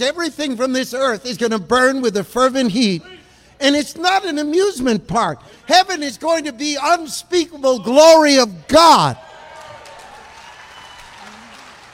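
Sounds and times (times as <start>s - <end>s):
speech: 0.0s - 9.3s
large crowd clapping: 9.3s - 11.9s.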